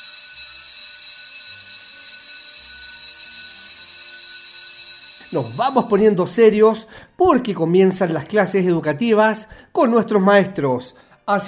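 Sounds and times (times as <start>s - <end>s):
electric school bell ringing: 0.0s - 6.4s
speech: 5.3s - 11.4s.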